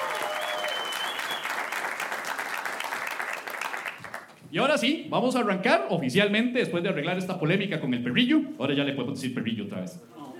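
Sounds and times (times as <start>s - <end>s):
audience applause: 0.0s - 4.3s
speech: 4.5s - 10.2s.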